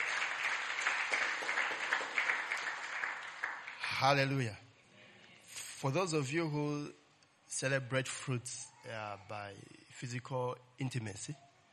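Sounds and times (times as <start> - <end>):
crowd applauding: 0.0 - 4.3
speech: 4.0 - 4.6, 5.8 - 11.5.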